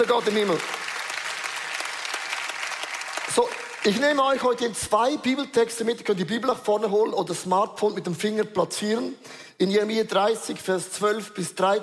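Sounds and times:
speech: 0.0s - 0.8s, 3.4s - 11.8s
audience applause: 0.0s - 4.6s.

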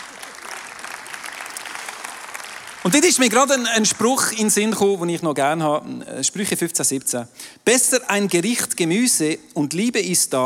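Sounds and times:
audience applause: 0.0s - 3.3s
speech: 2.8s - 10.4s.

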